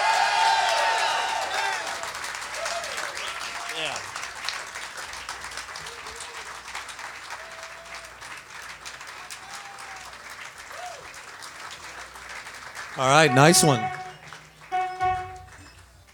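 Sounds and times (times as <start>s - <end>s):
concert audience clapping welcoming a band: 0.0s - 15.4s
speech: 13.0s - 14.0s.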